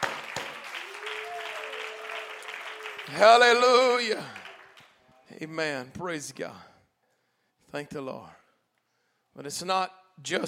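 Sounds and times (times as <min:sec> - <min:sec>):
audience clapping hands: 0:00.0 - 0:05.2
speech: 0:03.1 - 0:04.4, 0:05.4 - 0:06.7, 0:07.7 - 0:08.4, 0:09.4 - 0:10.4.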